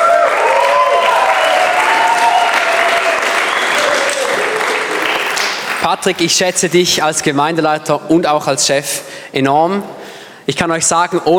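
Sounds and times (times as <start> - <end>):
faint voices and cheers: 0.0 - 5.3
audience applause: 0.0 - 6.2
speech: 5.9 - 11.3.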